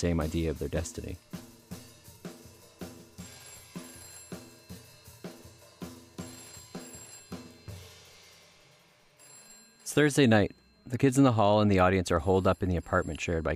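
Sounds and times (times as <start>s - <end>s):
speech: 0.0s - 1.4s, 10.0s - 13.5s
telephone ringing: 2.8s - 8.2s, 9.1s - 13.5s.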